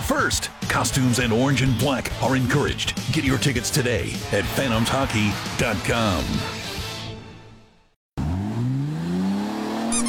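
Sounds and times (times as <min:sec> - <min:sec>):
speech: 0:00.1 - 0:06.6
car engine revving: 0:08.2 - 0:10.0
tire squeak: 0:09.8 - 0:10.0.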